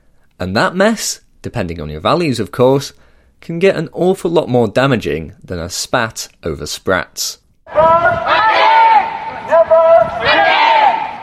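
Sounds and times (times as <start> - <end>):
speech: 0.4 - 8.7
anti-mask protesters shouting at the Indiana State House: 7.7 - 11.2.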